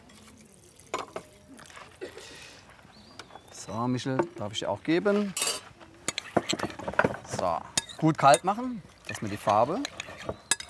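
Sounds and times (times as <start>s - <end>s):
water being poured over food to cool it: 0.0s - 1.8s
speech: 3.7s - 5.5s, 7.4s - 10.4s.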